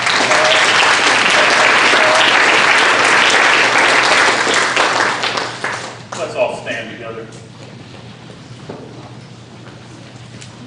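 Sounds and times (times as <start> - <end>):
audience clapping hands: 0.0 - 6.4.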